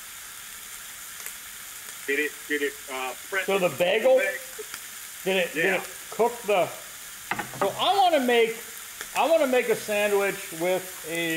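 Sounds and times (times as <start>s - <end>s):
ribeye steak sizzling in a $25 panini press: 0.0s - 11.3s
speech: 2.1s - 6.8s, 7.5s - 11.3s.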